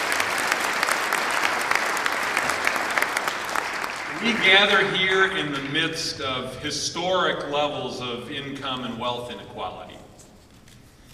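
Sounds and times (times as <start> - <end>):
audience applause: 0.0 - 6.0
speech: 4.2 - 10.0.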